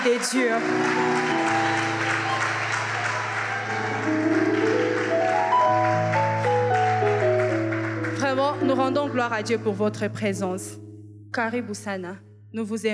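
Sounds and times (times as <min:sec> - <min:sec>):
speech: 0:00.0 - 0:01.5, 0:08.8 - 0:12.9
audience applause: 0:00.0 - 0:09.3.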